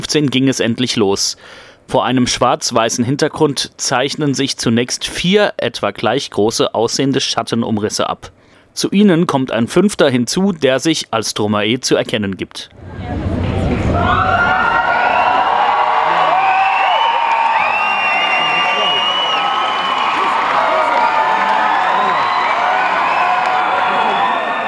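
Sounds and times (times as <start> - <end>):
speech: 0.1 - 14.6
concert crowd cheering: 12.8 - 24.6.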